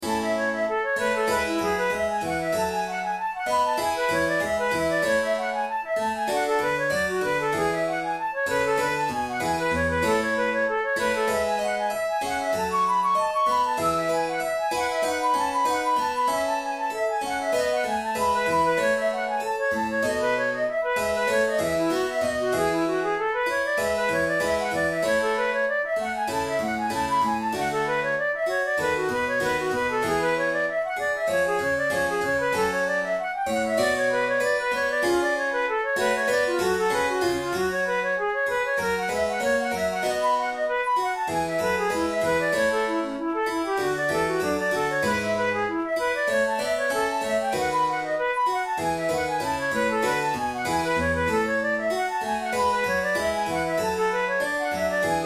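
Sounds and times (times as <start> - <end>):
flute playing allegro: 0.0 - 55.2.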